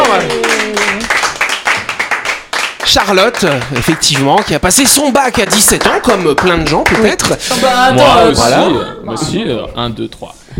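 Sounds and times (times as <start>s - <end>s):
applause: 0.0s - 7.4s
speech: 0.1s - 0.5s, 2.9s - 10.5s.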